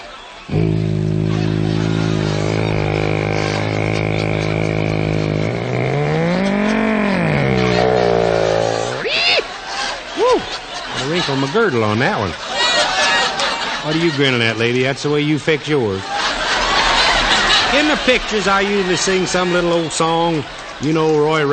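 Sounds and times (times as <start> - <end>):
voice imitating an airplane engine in a power dive: 0.5 - 9.2
laughter: 0.5 - 14.8, 15.9 - 19.8
speech: 11.3 - 12.5, 13.8 - 16.1, 17.7 - 21.5.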